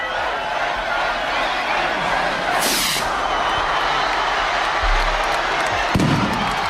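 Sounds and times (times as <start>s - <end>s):
large crowd cheering: 0.0s - 6.6s
festival rocket hissing up: 2.6s - 3.1s.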